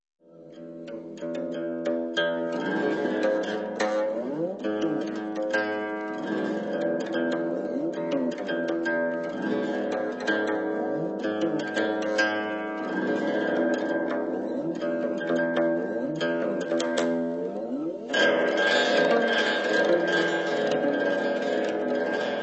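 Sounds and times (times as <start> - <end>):
qin music: 0.4 - 22.4.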